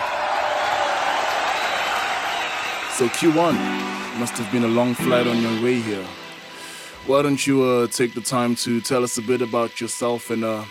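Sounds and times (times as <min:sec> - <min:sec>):
crowd applauding: 0:00.0 - 0:06.9
speech: 0:03.0 - 0:06.2, 0:07.0 - 0:10.6.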